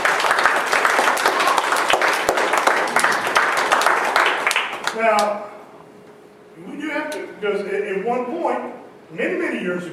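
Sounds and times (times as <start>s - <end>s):
audience applause: 0.0s - 5.0s
speech: 5.1s - 5.5s, 7.4s - 9.9s.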